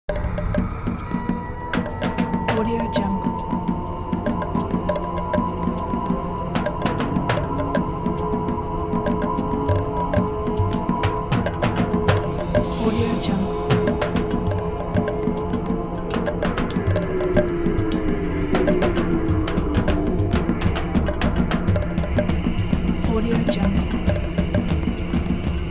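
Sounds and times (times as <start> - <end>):
dark mysterious percussion: 0.1 - 25.6.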